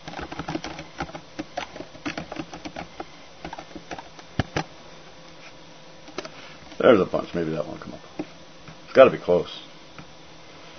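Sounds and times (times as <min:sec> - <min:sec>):
typing on a computer keyboard: 0:00.0 - 0:04.7
speech: 0:06.8 - 0:08.3, 0:09.0 - 0:09.7.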